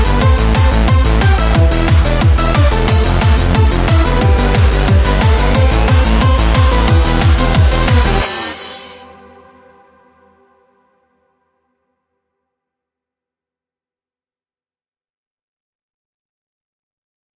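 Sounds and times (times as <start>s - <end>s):
hardcore music loops: 0.0s - 9.3s.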